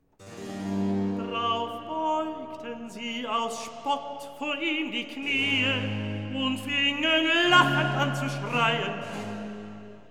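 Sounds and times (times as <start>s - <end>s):
recitative singing: 1.1s - 10.0s.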